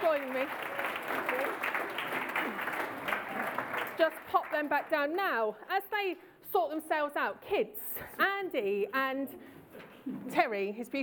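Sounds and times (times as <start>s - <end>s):
audience applause: 0.0s - 5.0s
speech: 4.0s - 11.0s.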